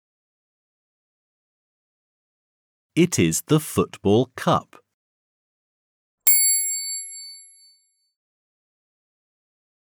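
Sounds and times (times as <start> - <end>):
speech: 3.0 - 4.8
page-turn bell ding: 6.3 - 7.9.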